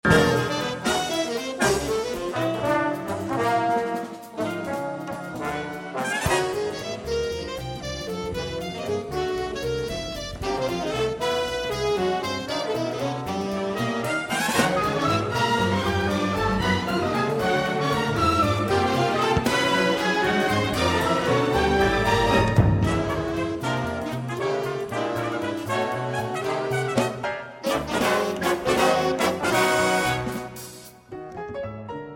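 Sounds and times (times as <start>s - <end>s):
jazz band and orchestra concerto: 0.0s - 32.1s.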